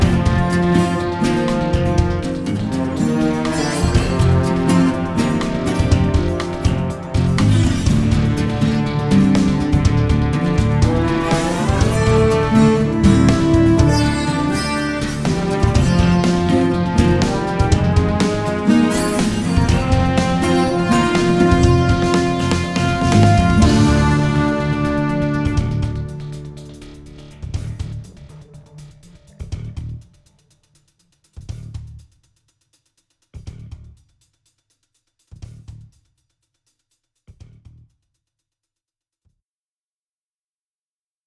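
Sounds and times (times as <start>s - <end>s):
low tension inspirational music: 0.0s - 29.5s.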